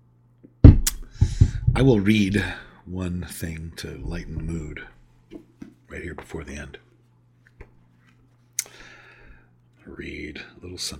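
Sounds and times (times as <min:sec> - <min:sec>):
dull thump: 0:00.6 - 0:02.6, 0:04.0 - 0:05.0
faint steady low hum: 0:00.7 - 0:02.8, 0:03.9 - 0:05.1
speech: 0:01.8 - 0:06.8, 0:09.9 - 0:10.9.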